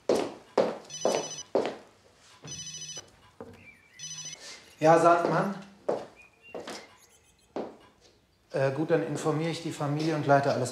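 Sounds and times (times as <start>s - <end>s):
mobile phone ringing: 0.9s - 1.7s, 2.3s - 5.0s
speech: 4.8s - 5.7s, 8.6s - 10.7s.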